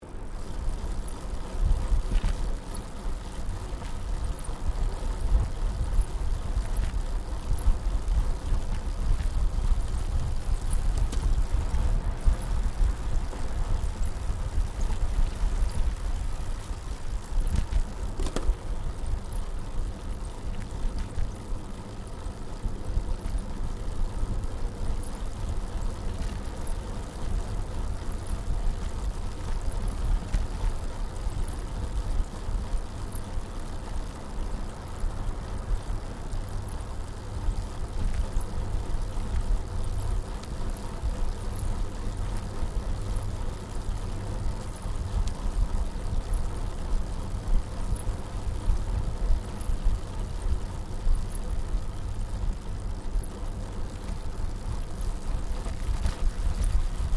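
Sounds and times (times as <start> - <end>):
21-speed road bicycle riding on smooth concrete: 0.0 - 57.1.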